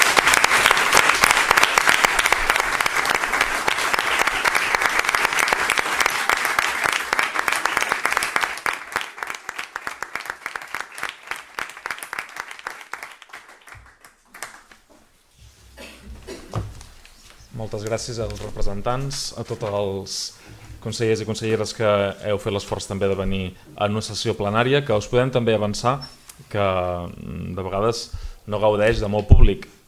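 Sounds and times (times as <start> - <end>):
audience applause: 0.0 - 14.8
speech: 17.6 - 29.7.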